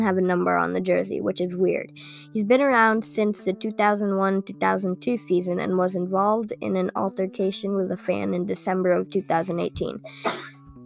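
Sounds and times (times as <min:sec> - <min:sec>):
speech: 0:00.0 - 0:10.5
person sneezing: 0:10.1 - 0:10.6.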